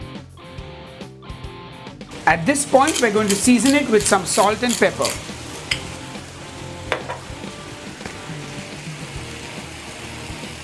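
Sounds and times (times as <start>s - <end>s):
speech: 2.3s - 5.4s
potatoes and vegetables with garlic sizzling in a pan: 2.4s - 10.6s
stirring clicks: 2.8s - 5.8s.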